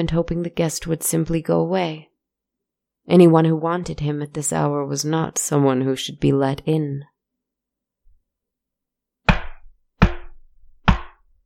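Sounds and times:
speech: 0.0s - 2.1s, 3.1s - 7.1s
knocking on a wooden door: 9.3s - 11.2s.

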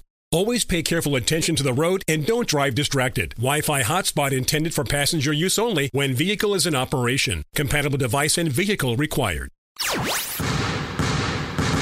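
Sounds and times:
speech: 0.3s - 10.2s
basketball being dribbled: 10.4s - 11.8s.

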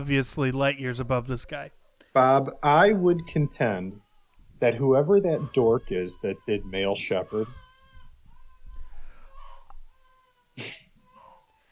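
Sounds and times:
speech: 0.0s - 4.0s, 4.6s - 7.6s, 10.6s - 10.8s
baby screaming in the background: 2.6s - 11.7s.

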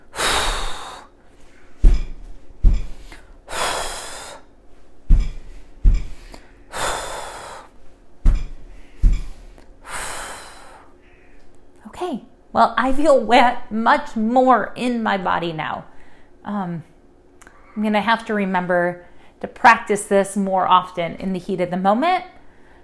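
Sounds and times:
person blowing out breath: 0.0s - 1.6s, 2.9s - 4.5s, 6.1s - 7.7s
foot stomping: 1.8s - 3.1s, 5.0s - 6.4s, 8.2s - 9.5s
speech: 12.1s - 15.9s, 16.5s - 16.9s, 17.8s - 22.3s.

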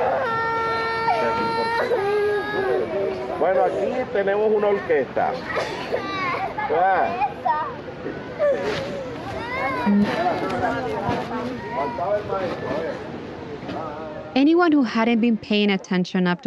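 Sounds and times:
young children screaming and sobbing: 0.0s - 4.0s, 5.4s - 12.9s
speech: 3.4s - 7.3s, 8.5s - 8.9s, 9.8s - 13.1s, 14.4s - 16.4s.

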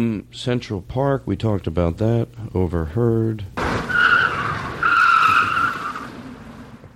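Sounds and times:
speech: 0.0s - 3.9s
car tires skidding: 3.6s - 6.9s.

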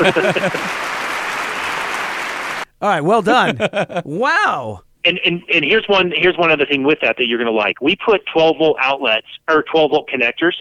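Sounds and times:
speech: 0.0s - 1.0s, 2.8s - 10.5s
laughter: 0.0s - 1.8s, 3.1s - 4.4s
a few people clapping hands: 0.0s - 3.7s.

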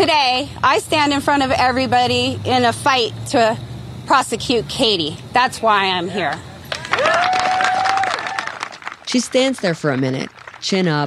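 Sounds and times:
speech: 0.0s - 7.7s, 9.1s - 11.0s
crowd clapping: 6.6s - 11.0s
high-pitched cheering whoop: 6.7s - 8.8s.

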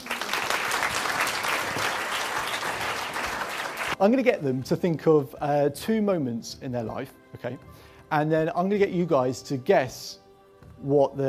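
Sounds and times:
audience round of applause: 0.0s - 4.0s
speech: 4.0s - 10.2s, 10.8s - 11.2s.

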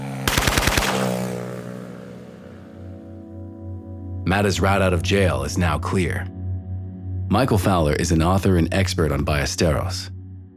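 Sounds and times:
machine gun fire in a motorcycle drive-by shooting: 0.2s - 1.5s
speech: 4.3s - 6.4s, 7.3s - 10.5s.

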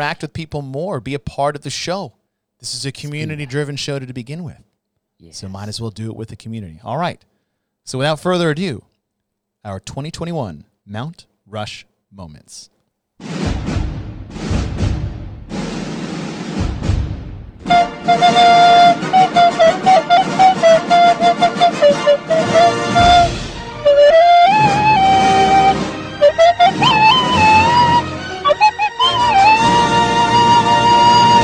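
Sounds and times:
speech: 0.0s - 8.9s, 9.6s - 13.4s
theme music: 13.2s - 31.4s
slide whistle in theme music: 17.7s - 31.4s.

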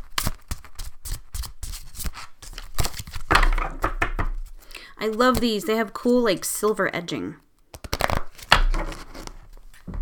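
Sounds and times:
deck of oracle cards being shuffled: 0.0s - 3.3s, 4.4s - 6.0s, 7.7s - 9.9s
speech: 5.0s - 7.4s.

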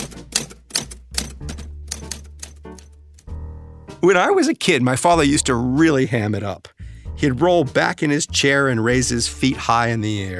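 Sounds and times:
typewriter typing: 0.0s - 2.9s
speech: 4.0s - 10.3s.

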